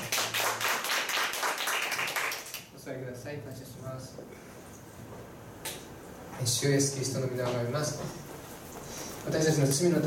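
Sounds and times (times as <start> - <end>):
church congregation applauding in praise to God: 0.0 - 2.7
speech: 2.9 - 5.4, 6.4 - 8.3, 9.2 - 10.0.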